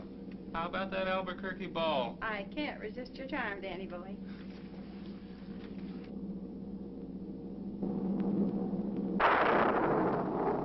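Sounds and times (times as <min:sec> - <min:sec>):
speech: 0:00.5 - 0:04.4
blast of thunder: 0:07.8 - 0:10.6.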